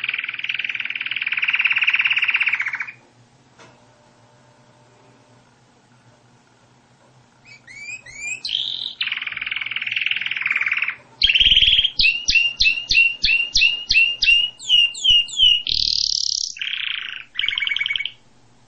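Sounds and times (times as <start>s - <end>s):
canary singing: 0.0s - 3.0s, 7.4s - 18.4s.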